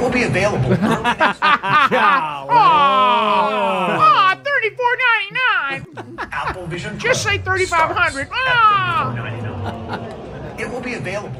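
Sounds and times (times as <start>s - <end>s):
speech: 0.0s - 2.3s, 7.2s - 9.4s, 10.9s - 11.3s
laughter: 0.6s - 4.3s, 5.6s - 11.3s
audience groaning at announced price: 2.2s - 4.1s, 6.0s - 11.3s.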